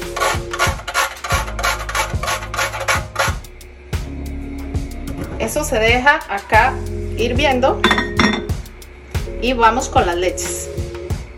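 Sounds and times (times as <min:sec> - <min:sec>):
grating nutmeg: 0:00.0 - 0:03.5
speech: 0:05.6 - 0:08.1, 0:09.4 - 0:10.7.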